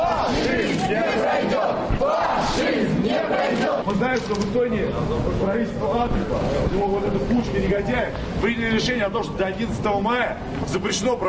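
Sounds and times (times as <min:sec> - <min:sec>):
rally crowd chanting and shouting: 0:00.0 - 0:04.0
speech: 0:03.8 - 0:11.2.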